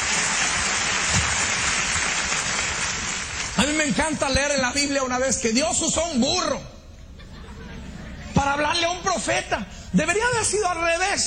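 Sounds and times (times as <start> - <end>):
crowd clapping: 0.0 - 3.8
speech: 3.7 - 6.7, 8.4 - 11.2
laughter: 7.1 - 8.5.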